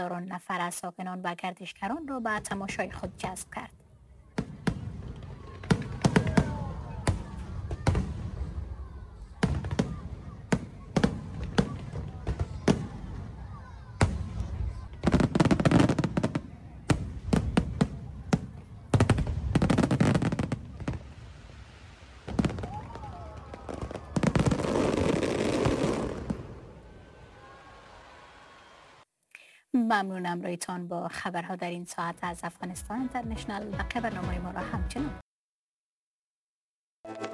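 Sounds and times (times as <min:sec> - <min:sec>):
speech: 0:00.0 - 0:03.8, 0:29.9 - 0:35.3
fireworks bursting at a festival: 0:02.3 - 0:29.0.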